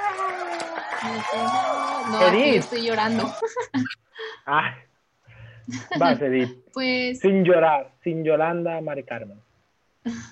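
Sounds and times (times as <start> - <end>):
applause: 0.0 - 3.3
cheering: 0.0 - 3.6
speech: 1.0 - 4.9, 5.6 - 10.3
laughter: 2.1 - 4.0.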